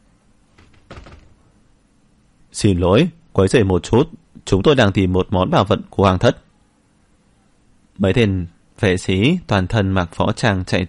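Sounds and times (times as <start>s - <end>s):
door being pushed open: 0.5s - 1.5s
speech: 2.6s - 6.4s, 8.0s - 10.8s.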